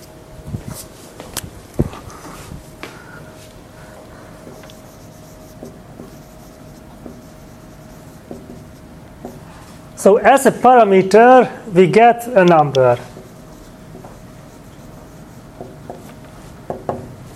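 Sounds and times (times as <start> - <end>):
marker writing on a board: 4.4 - 9.6, 13.0 - 17.2
speech: 10.0 - 13.1.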